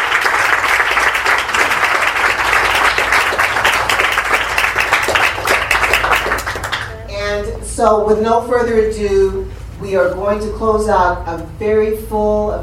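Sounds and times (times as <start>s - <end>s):
audience applause: 0.0s - 6.9s
speech: 7.8s - 12.6s.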